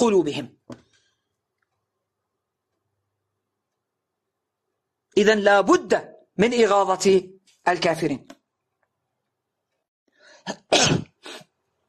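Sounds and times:
speech: 0.0s - 0.8s, 5.2s - 8.4s, 10.4s - 11.0s
person sneezing: 10.3s - 11.6s.

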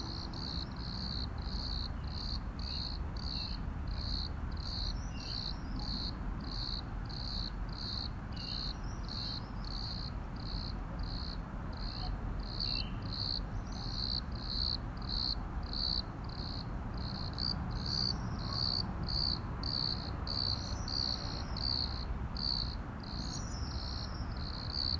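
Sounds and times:
cricket chirping: 0.0s - 24.9s.

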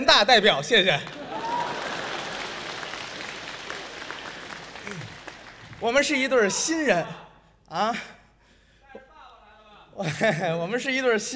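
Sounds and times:
speech: 0.0s - 1.2s, 5.8s - 8.2s, 10.0s - 11.3s
crowd applause: 1.0s - 6.4s.

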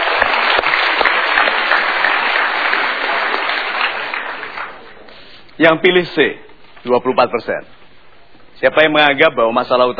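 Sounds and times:
studio audience applause: 0.0s - 5.0s
speech: 5.6s - 7.8s, 8.6s - 9.9s.

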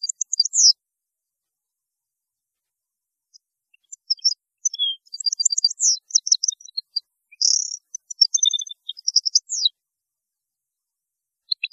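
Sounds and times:
European goldfinch singing: 0.0s - 0.8s, 3.7s - 9.8s, 11.4s - 11.7s.

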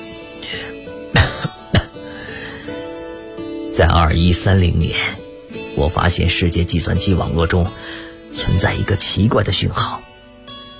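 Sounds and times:
man coughing: 1.1s - 2.1s
speech: 3.8s - 5.2s, 5.8s - 10.0s.

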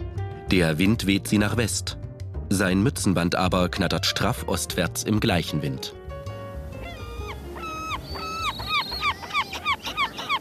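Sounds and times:
speech: 0.5s - 6.0s
gulls calling: 6.3s - 10.3s.

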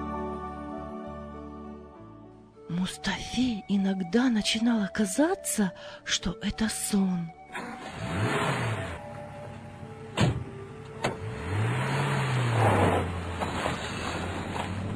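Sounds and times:
speech: 2.7s - 7.4s
car driving fast with engine drone: 7.4s - 14.9s.

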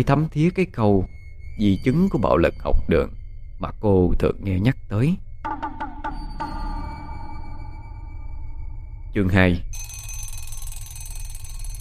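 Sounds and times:
speech: 0.0s - 5.9s, 9.2s - 9.9s
alarm clock ringing: 6.1s - 11.8s.

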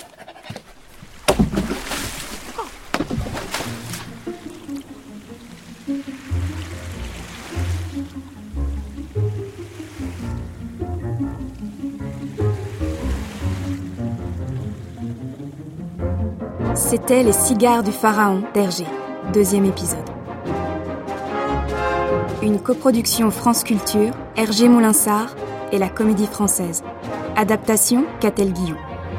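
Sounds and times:
water sloshing and splashing around a boat: 0.0s - 16.5s
steady melodic music bed: 3.7s - 29.1s
speech: 16.9s - 20.1s, 22.4s - 28.9s.

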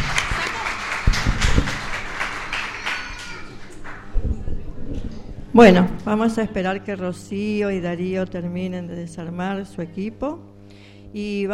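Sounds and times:
audience clapping for fellow performers: 0.0s - 4.2s
crowd voices and noise: 0.0s - 6.0s
speech: 5.6s - 10.5s, 11.1s - 11.5s.

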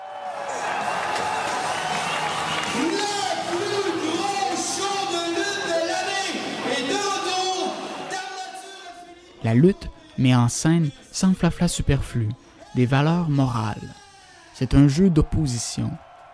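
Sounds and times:
wrestling crowd cheering and shouting: 0.0s - 10.1s, 13.9s - 16.3s
speech: 9.5s - 14.0s, 14.6s - 16.0s.

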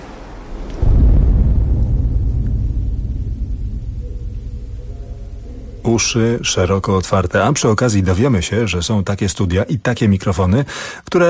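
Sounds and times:
long reverberation inside a reverberation chamber: 0.4s - 7.6s
speech: 5.9s - 11.2s.

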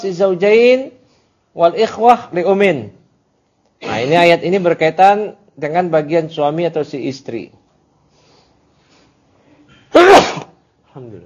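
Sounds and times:
speech: 0.0s - 1.0s, 1.6s - 3.0s, 3.8s - 7.6s, 11.0s - 11.2s
sneeze: 9.7s - 10.6s.

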